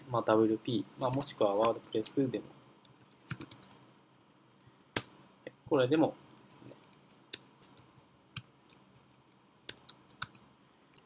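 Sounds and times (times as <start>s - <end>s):
speech: 0.1s - 2.6s, 5.7s - 6.2s
typing on a computer keyboard: 1.0s - 5.1s, 6.4s - 11.0s.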